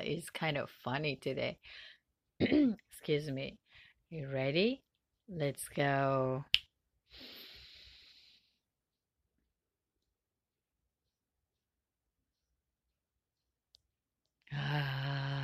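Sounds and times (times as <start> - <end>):
speech: 0.1 - 7.4, 14.5 - 15.3
breathy exhale: 7.1 - 8.6.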